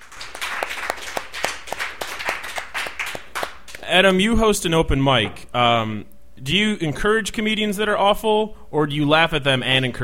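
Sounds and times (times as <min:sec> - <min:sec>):
audience clapping: 0:00.0 - 0:03.9
speech: 0:03.9 - 0:10.0.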